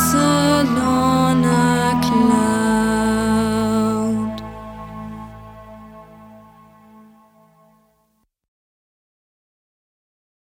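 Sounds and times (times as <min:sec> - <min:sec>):
person singing: 0:00.0 - 0:04.6.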